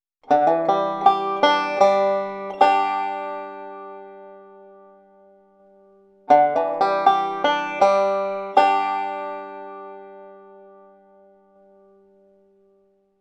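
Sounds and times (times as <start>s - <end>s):
banjo roll with hammer-on triplets: 0.3s - 4.8s, 6.3s - 11.2s.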